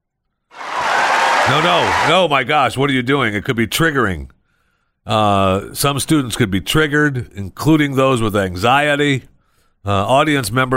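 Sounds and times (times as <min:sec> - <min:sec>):
crowd clapping: 0:00.6 - 0:02.3
speech: 0:01.5 - 0:04.4, 0:05.0 - 0:10.7.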